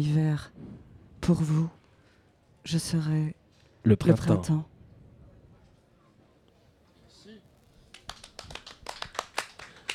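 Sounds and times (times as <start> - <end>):
speech: 0.0 - 0.6, 1.3 - 1.8, 2.6 - 4.7
crowd applauding: 7.8 - 9.9.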